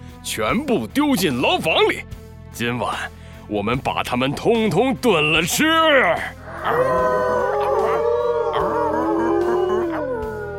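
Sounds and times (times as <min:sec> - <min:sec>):
speech: 0:00.2 - 0:07.4
wolves howling together: 0:05.5 - 0:10.5.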